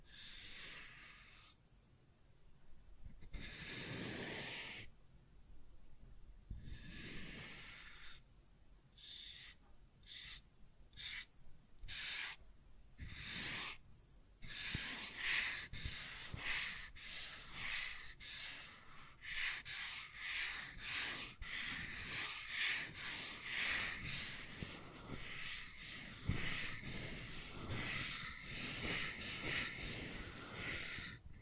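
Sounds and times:
scratching and tracing on a surface: 0:03.2 - 0:04.9, 0:06.8 - 0:08.2, 0:09.0 - 0:12.4, 0:13.0 - 0:13.8, 0:14.4 - 0:31.4.

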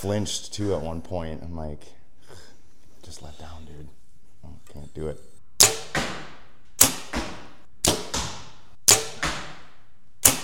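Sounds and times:
speech: 0:00.0 - 0:02.0, 0:03.1 - 0:05.8
arrows from a 60-pound bow striking a target during target practice: 0:05.6 - 0:10.4.

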